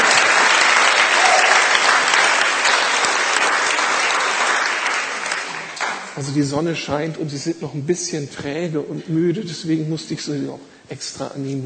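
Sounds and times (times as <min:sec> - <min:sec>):
audience applauding: 0:00.0 - 0:06.4
speech: 0:06.2 - 0:11.6.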